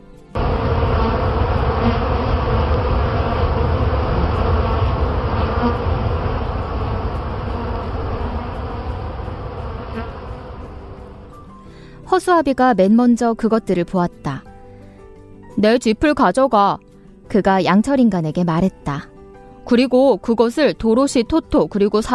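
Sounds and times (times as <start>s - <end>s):
dense swarm of bees buzzing: 0.4s - 11.5s
speech: 12.2s - 14.4s, 15.6s - 19.1s, 19.7s - 22.1s.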